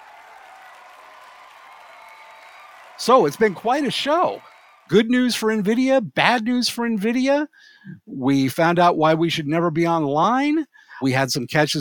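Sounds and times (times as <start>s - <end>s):
applause: 0.0s - 5.3s
speech: 3.0s - 11.8s.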